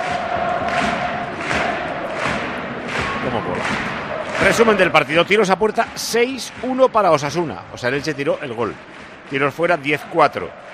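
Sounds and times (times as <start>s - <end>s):
football stadium crowd celebrating and applauding: 0.0s - 10.7s
speech: 3.3s - 10.7s.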